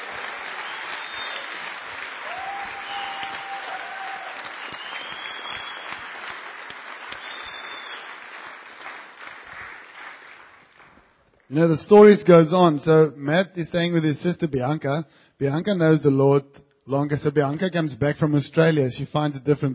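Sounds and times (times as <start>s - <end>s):
crowd applauding: 0.0s - 11.5s
faint whistles and cheers: 0.5s - 6.4s, 7.0s - 8.2s
speech: 11.5s - 19.7s.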